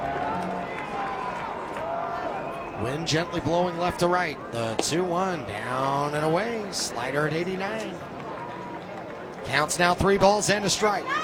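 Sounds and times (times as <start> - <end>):
baseball fans cheering on a batter in a stadium: 0.0 - 4.8, 7.8 - 11.2
speech: 2.8 - 8.2, 9.5 - 11.2.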